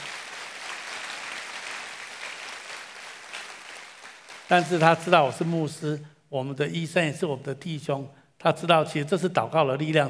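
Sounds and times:
warm audience applause: 0.0 - 5.5
speech: 4.5 - 10.0.

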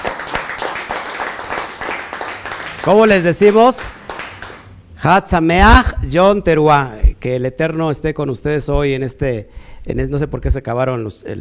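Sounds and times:
audience applause: 0.0 - 4.7
speech: 2.8 - 4.0, 5.0 - 11.3.

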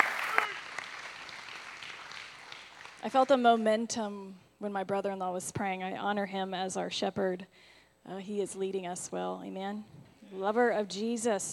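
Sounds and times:
audience applause welcoming a speaker at a Mother's Day church service: 0.0 - 3.0
speech: 3.0 - 11.5.

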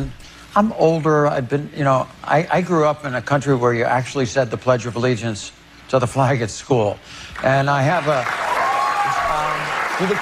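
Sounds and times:
speech: 0.0 - 8.5, 10.0 - 10.2
late-night talk show studio audience applauding: 7.4 - 10.2.

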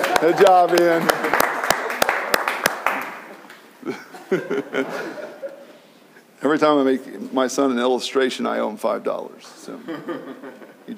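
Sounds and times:
audience applause: 0.0 - 3.6
speech: 0.2 - 1.4, 3.8 - 5.2, 6.4 - 10.9
laughter: 3.8 - 5.8, 9.8 - 10.8.

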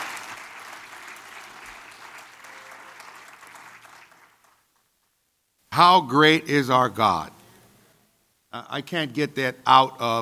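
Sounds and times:
crowd applauding: 0.0 - 4.7
speech: 5.8 - 7.4, 8.5 - 10.2.

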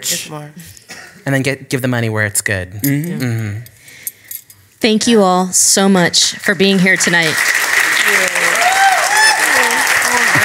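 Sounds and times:
speech: 0.0 - 3.7, 4.8 - 8.4
audience clapping: 6.5 - 10.4.

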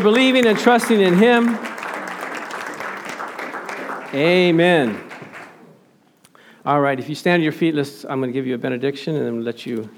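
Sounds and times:
speech: 0.0 - 1.7, 4.1 - 5.1, 6.6 - 9.9
audience clapping hands: 0.0 - 5.8.

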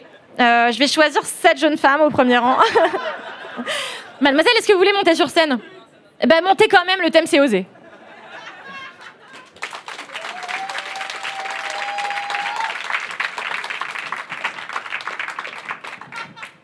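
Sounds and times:
speech: 0.4 - 7.8
laughter: 2.6 - 4.2, 7.7 - 9.8, 15.7 - 16.6
audience applause: 9.3 - 16.6.

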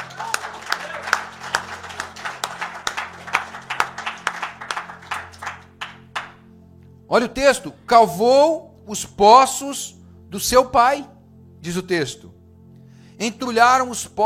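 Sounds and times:
audience applauding: 0.0 - 6.4
speech: 7.1 - 12.4, 13.2 - 14.2.

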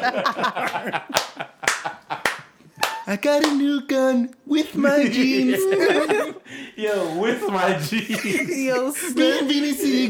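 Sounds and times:
speech: 0.0 - 1.2, 3.1 - 6.2, 6.8 - 10.0
laughter: 0.0 - 3.1, 4.8 - 10.0
crowd clapping: 0.6 - 3.6.

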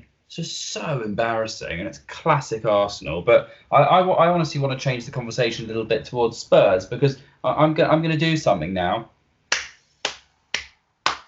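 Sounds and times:
speech: 0.3 - 9.1
hand clap: 9.5 - 11.2.

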